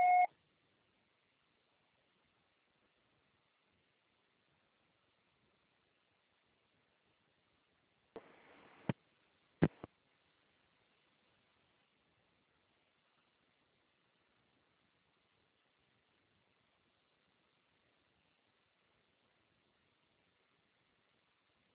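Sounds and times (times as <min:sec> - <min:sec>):
answering machine beep before recording a message: 0:00.0 - 0:00.3
soft hiss: 0:00.0 - 0:21.7.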